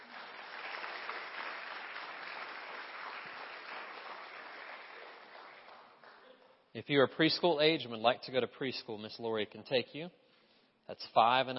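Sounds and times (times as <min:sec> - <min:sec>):
church congregation applauding the children: 0:00.0 - 0:06.6
speech: 0:06.8 - 0:10.2, 0:10.9 - 0:11.5.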